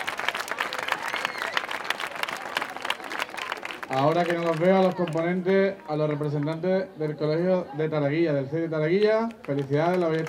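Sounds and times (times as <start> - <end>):
audience applause: 0.0 - 5.4, 9.4 - 10.2
speech: 3.9 - 10.2.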